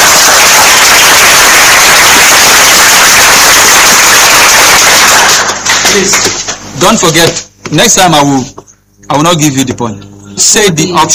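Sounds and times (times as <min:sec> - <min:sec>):
applause from a group: 0:00.0 - 0:06.6
speech: 0:06.0 - 0:11.1.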